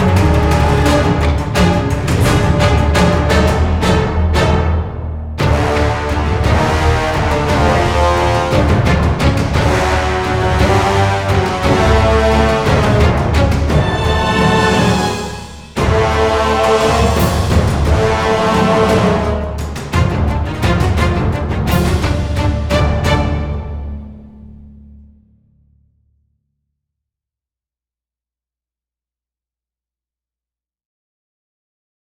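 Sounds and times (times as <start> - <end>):
orchestral action music: 0.0 - 25.0.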